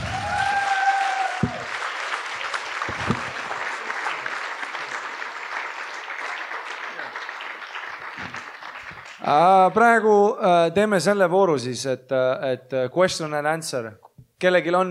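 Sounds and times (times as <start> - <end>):
crowd applause: 0.0 - 9.8
speech: 9.3 - 14.9.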